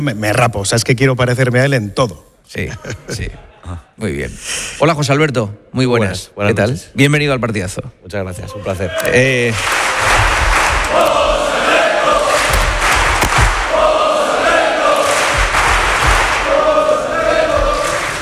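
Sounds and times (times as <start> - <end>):
speech: 0.0 - 10.3, 10.9 - 11.4
crowd chanting for a guest on a football show: 9.7 - 18.2.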